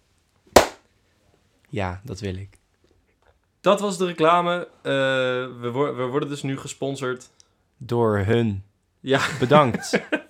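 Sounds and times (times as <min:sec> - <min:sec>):
hand clap: 0:00.6 - 0:00.8
speech: 0:01.7 - 0:02.6, 0:03.6 - 0:10.2
laughter: 0:09.1 - 0:10.2.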